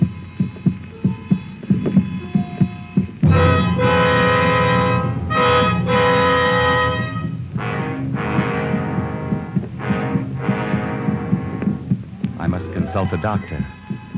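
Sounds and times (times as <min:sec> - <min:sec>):
low rhythmic throbbing heartbeat-like pulse: 0:00.0 - 0:13.1
loud sustained humming drone with shifting tonal overtones: 0:03.2 - 0:13.2
speech: 0:13.1 - 0:13.8.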